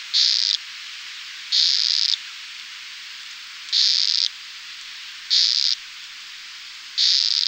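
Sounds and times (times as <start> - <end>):
Amazonian poison frog buzzy calls: 0.1 - 0.6, 1.5 - 2.2, 3.7 - 4.3, 5.3 - 5.8, 7.0 - 7.4.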